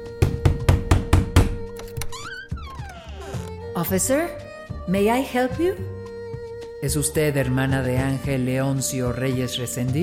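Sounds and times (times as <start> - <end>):
knocking on a door: 0.2 - 1.8
speech: 3.8 - 6.0, 6.8 - 10.0.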